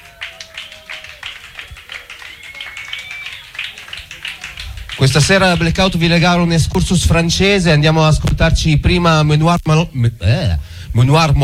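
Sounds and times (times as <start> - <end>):
audience applause: 0.0 - 6.8
speech: 5.0 - 11.4.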